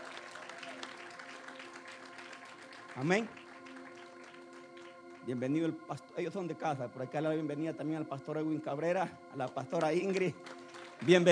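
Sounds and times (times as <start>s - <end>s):
church congregation applause welcoming visiting pastors: 0.0s - 5.4s, 9.5s - 11.3s
speech: 3.0s - 3.4s, 5.3s - 11.3s.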